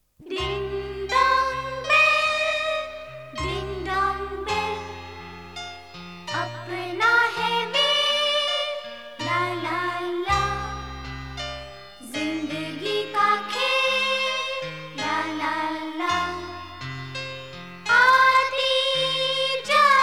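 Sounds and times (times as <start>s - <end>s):
nursery rhyme song: 0.0s - 20.0s.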